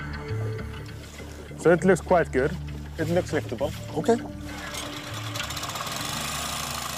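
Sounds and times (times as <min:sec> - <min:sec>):
air compressor pumping air into fabric lift pontoons: 0:00.2 - 0:06.9
speech: 0:01.6 - 0:04.4.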